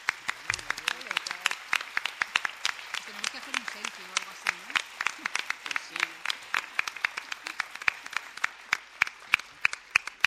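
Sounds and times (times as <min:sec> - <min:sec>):
audience applause: 0:00.0 - 0:10.2
murmur of voices: 0:00.3 - 0:01.8, 0:03.0 - 0:07.8
speech: 0:03.1 - 0:06.4.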